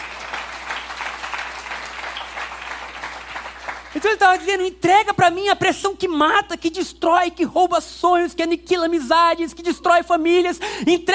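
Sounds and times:
crowd applause: 0.0s - 4.2s
speech: 4.0s - 11.1s.

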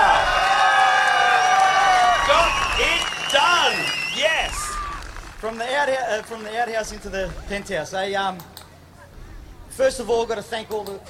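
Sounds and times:
crowd cheering and applause: 0.0s - 7.2s
speech: 5.4s - 8.6s, 9.8s - 11.0s.

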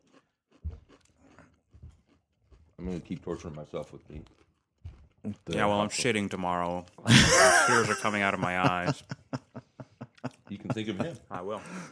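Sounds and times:
someone chewing ghost pepper chips: 0.0s - 7.0s
speech: 2.8s - 4.4s, 5.2s - 9.2s, 10.5s - 11.9s
laughter: 7.1s - 11.9s.

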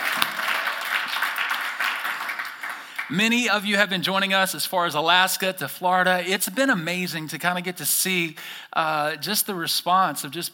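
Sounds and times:
church congregation at the Nampa Civic Center clapping: 0.0s - 3.7s
speech: 3.1s - 10.5s.

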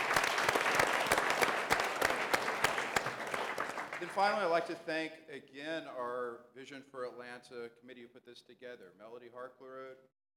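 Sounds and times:
audience applause: 0.0s - 4.8s
speech: 4.0s - 10.2s.

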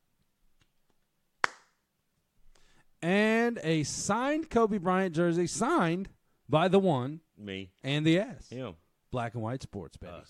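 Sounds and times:
golf clap: 1.4s - 1.8s
speech: 3.0s - 10.2s.

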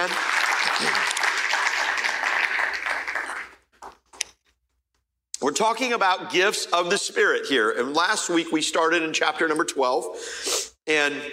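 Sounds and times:
speech: 0.0s - 1.2s, 5.5s - 11.3s
applause in a church for a newlywed couple: 0.0s - 4.1s.

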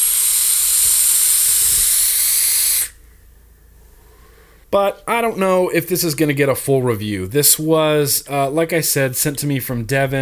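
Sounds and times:
loud high-pitched screeching hiss from a vape device: 0.0s - 3.0s
speech: 4.7s - 10.2s.

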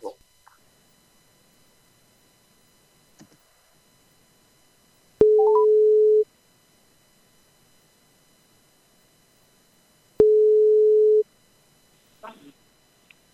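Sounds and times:
telephone ringback tone: 5.2s - 6.2s, 10.2s - 11.2s.

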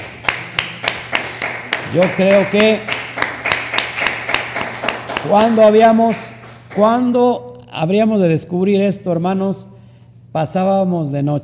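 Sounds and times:
audience applauding: 0.0s - 7.2s
speech: 1.9s - 2.9s, 5.2s - 9.7s, 10.3s - 11.4s.

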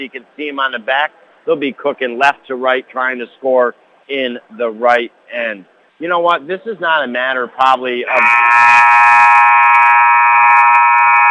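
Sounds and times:
speech: 0.0s - 8.9s
basketball game buzzer blaring: 8.1s - 11.2s.

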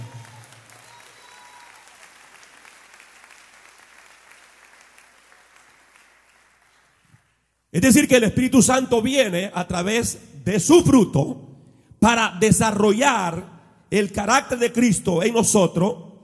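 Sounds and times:
audience applause: 0.0s - 7.2s
speech: 7.8s - 16.1s.

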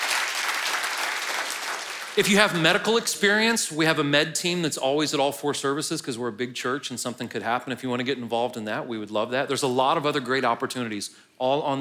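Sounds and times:
audience applause: 0.0s - 2.6s
speech: 2.2s - 11.7s.

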